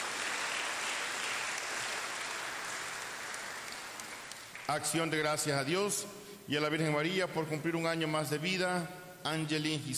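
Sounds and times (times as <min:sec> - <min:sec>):
audience applauding: 0:00.0 - 0:05.0
speech: 0:04.7 - 0:09.9.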